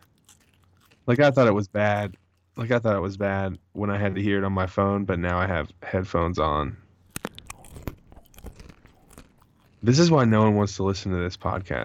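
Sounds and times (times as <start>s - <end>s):
cheese crackers being chewed: 0.0s - 5.7s, 6.3s - 11.8s
speech: 1.0s - 6.8s, 9.8s - 11.8s.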